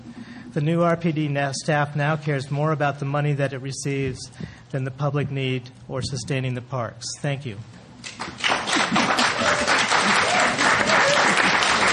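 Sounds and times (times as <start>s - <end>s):
speech: 0.5s - 9.8s
audience applause: 8.1s - 11.9s.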